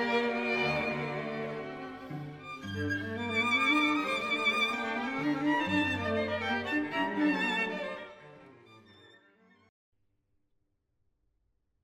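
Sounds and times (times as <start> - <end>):
string quartet playing: 0.0 - 8.9.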